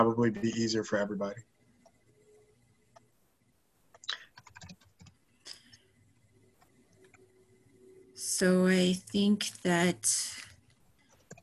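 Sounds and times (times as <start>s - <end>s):
speech: 0.0s - 1.6s, 8.3s - 10.5s
typing an email address on a computer keyboard: 3.9s - 5.8s, 11.0s - 11.4s.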